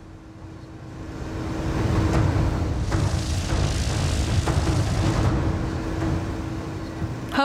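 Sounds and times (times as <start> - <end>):
Cessna light airplane taking off: 1.2 - 6.6.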